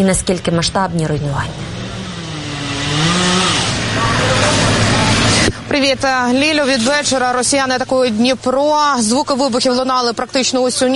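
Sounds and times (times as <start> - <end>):
speech: 0.0 - 1.8, 5.7 - 10.9
Shahed attack drone engine buzzing overhead: 1.1 - 6.7.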